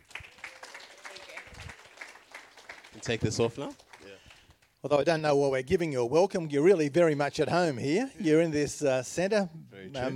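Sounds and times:
audience clapping at a community centre: 0.0s - 4.8s
speech: 3.0s - 3.9s, 4.8s - 10.1s.

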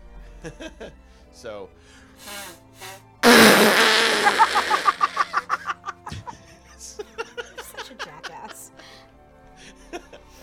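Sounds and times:
speech: 0.4s - 3.0s, 4.2s - 5.0s
nose blowing: 2.2s - 5.5s
laughter: 4.1s - 9.0s, 9.6s - 10.4s.

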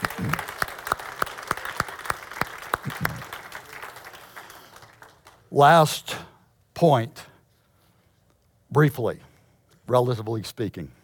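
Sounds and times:
audience clapping: 0.0s - 5.5s
speech: 5.6s - 6.2s, 6.8s - 7.2s, 8.8s - 9.3s, 9.9s - 11.0s.

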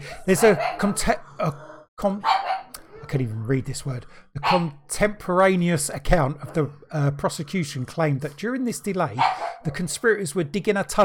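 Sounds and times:
speech: 0.1s - 11.0s
dogs barking: 0.3s - 3.1s, 4.4s - 4.8s, 9.1s - 9.7s.

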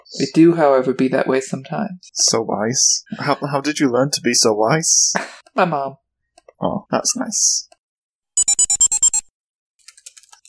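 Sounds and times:
speech: 0.1s - 6.0s, 6.6s - 7.7s
typing on a keyboard: 9.8s - 10.4s.

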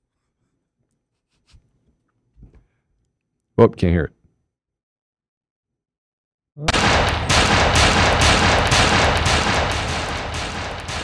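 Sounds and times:
speech: 3.6s - 4.2s
automatic gunfire at a shooting range: 6.7s - 11.0s.

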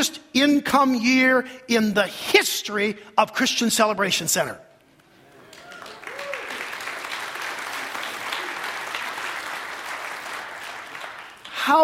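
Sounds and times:
speech: 0.0s - 4.7s, 11.7s - 11.8s
audience applause: 5.2s - 11.6s.

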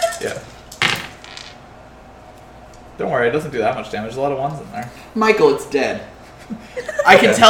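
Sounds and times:
many dice rolling: 0.0s - 1.6s
speech: 3.0s - 7.4s.

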